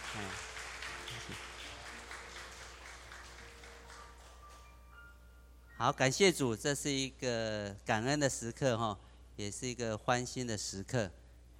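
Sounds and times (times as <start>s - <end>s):
audience applauding: 0.0s - 4.7s
speech: 0.2s - 0.5s, 1.1s - 1.5s, 5.8s - 11.5s.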